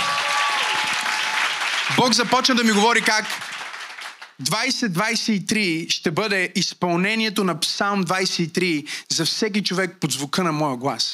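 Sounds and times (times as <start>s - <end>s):
church audience applause: 0.0s - 4.4s
speech: 1.9s - 3.4s, 4.4s - 11.1s.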